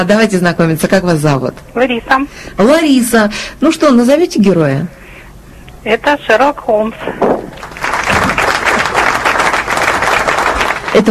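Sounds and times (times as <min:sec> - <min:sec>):
speech: 0:00.0 - 0:05.0, 0:05.8 - 0:07.4
studio audience applause: 0:07.5 - 0:11.0.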